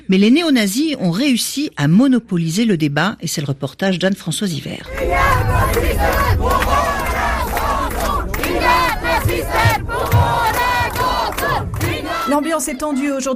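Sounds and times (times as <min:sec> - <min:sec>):
speech: 0:00.1 - 0:06.8, 0:12.3 - 0:13.3
antifascist protesters chanting anti-Nazi slogans in Gothenburg: 0:04.9 - 0:13.3.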